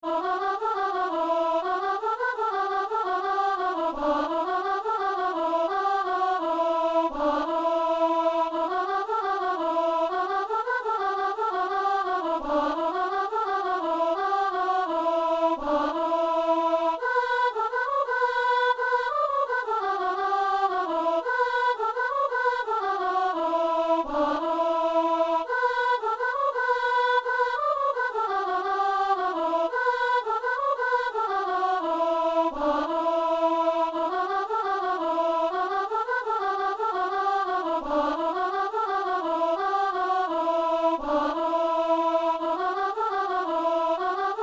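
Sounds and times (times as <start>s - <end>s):
soprano singing a tourdion: 0.1s - 44.4s.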